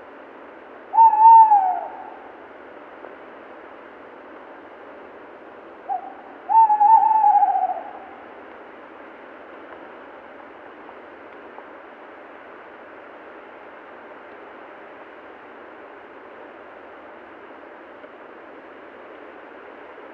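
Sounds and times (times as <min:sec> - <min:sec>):
Tawny owl (Strix aluco) hooting: 0:00.9 - 0:02.4, 0:05.9 - 0:08.2.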